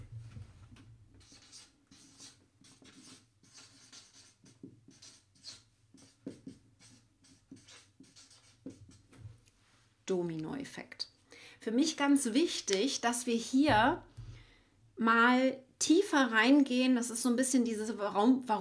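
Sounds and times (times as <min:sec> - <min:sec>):
pen or pencil scratching as something is written by hand: 0:01.2 - 0:09.2
speech: 0:10.1 - 0:11.0, 0:11.6 - 0:14.1, 0:15.0 - 0:18.5.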